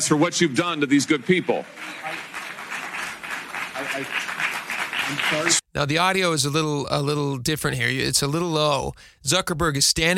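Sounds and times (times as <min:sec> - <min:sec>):
speech: 0:00.0 - 0:02.3, 0:03.9 - 0:04.4, 0:05.1 - 0:10.1
packed audience clapping at a US Senate hearing on social media: 0:00.0 - 0:05.6.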